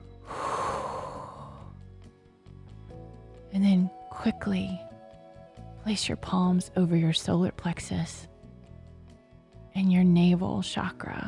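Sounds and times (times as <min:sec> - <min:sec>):
breath blown into open palms during a breathing exercise: 0:00.1 - 0:01.8
speech: 0:03.6 - 0:04.8, 0:05.8 - 0:08.3, 0:09.8 - 0:11.2.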